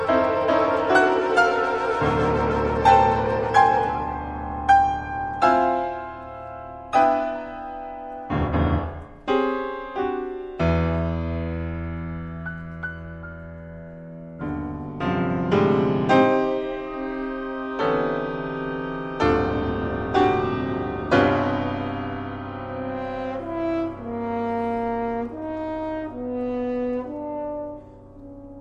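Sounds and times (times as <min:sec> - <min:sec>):
wind quintet: 0:00.0 - 0:05.9, 0:15.0 - 0:28.6
piano: 0:00.0 - 0:28.6.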